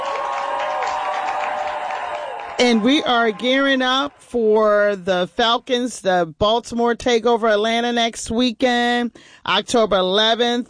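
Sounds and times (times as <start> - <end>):
crowd applause and cheering sound effect celebrating a Baltimore Ravens football win: 0.0 - 4.3
speech: 2.6 - 10.6.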